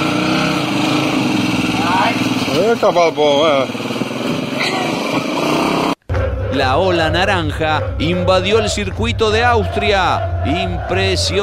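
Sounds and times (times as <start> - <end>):
small engine running: 0.0 - 7.0
speech: 2.7 - 3.8, 6.5 - 11.4.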